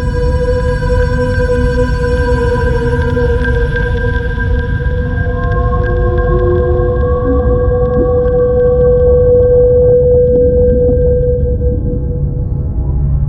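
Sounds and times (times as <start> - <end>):
whale song: 0.0 - 13.1.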